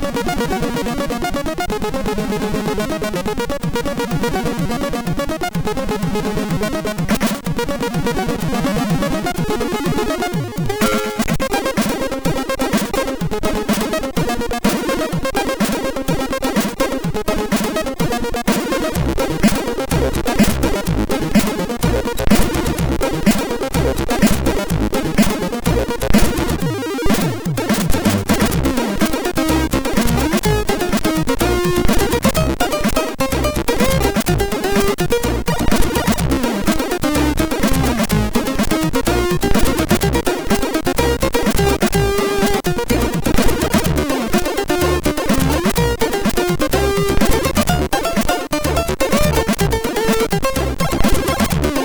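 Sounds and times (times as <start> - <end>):
SID MOS6581R3 chip music: 0.1 - 51.8.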